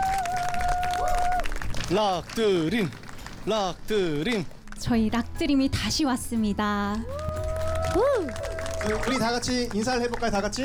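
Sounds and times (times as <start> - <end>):
audience applause: 0.0 - 4.3, 7.1 - 10.6
speech: 1.9 - 7.2, 7.9 - 10.6.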